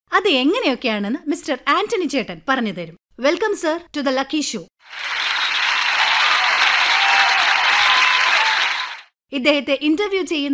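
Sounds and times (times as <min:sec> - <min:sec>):
speech: 0:00.2 - 0:05.2, 0:09.3 - 0:10.5
talk show audience applause: 0:04.8 - 0:09.1.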